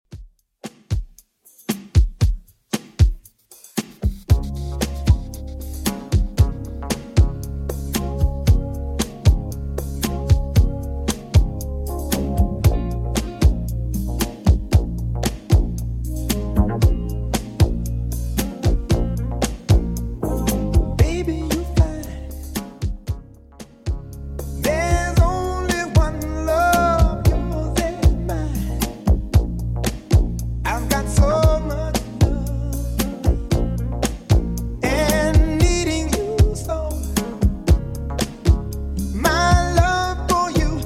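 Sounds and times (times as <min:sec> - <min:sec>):
1980s style remix music at 115 bpm: 0:01.6 - 0:40.8.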